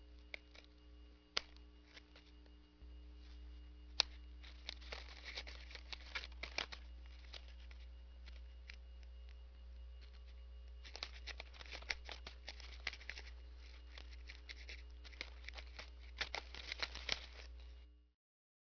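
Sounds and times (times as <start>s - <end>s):
butterfly sound: 3.2s - 17.7s.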